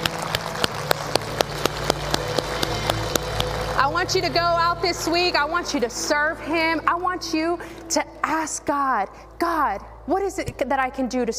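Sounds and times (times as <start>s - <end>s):
audience hand clapping: 0.0s - 6.1s
speech: 4.0s - 11.3s.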